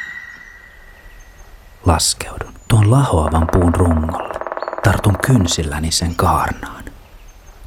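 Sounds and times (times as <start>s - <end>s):
speech: 1.9s - 6.8s
bird flight call: 2.8s - 5.9s.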